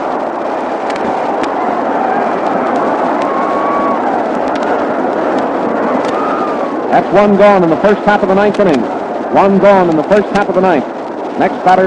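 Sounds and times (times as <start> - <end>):
baseball crowd yelling: 1.0 - 6.9
speech: 6.9 - 11.8.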